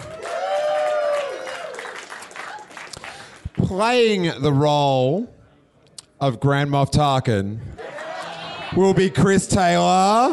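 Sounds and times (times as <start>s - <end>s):
audience applause: 0.0s - 3.6s
speech: 3.7s - 5.4s, 6.2s - 7.8s, 8.7s - 10.3s
laughter: 7.8s - 9.0s.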